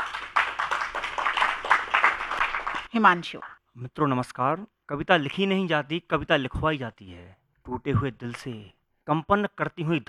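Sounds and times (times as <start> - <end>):
audience at a poetry reading clapping: 0.0 - 3.5
speech: 2.9 - 10.0.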